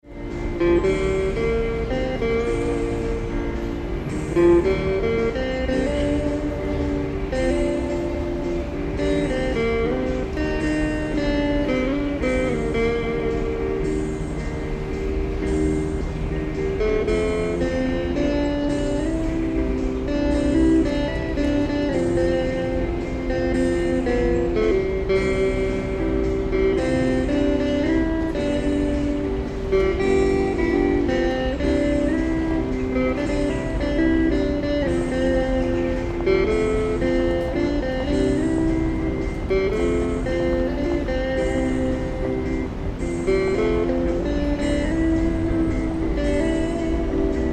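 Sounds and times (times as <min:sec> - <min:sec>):
busker performing in Sofia: 0:00.0 - 0:47.5.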